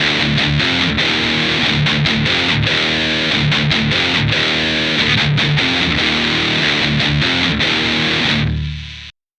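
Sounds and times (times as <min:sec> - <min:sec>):
guitar: 0:00.0 - 0:09.2.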